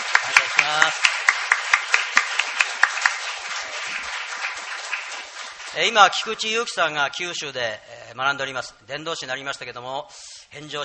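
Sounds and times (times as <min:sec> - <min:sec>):
audience applause: 0:00.0 - 0:06.5
speech: 0:00.7 - 0:01.2, 0:05.8 - 0:10.8.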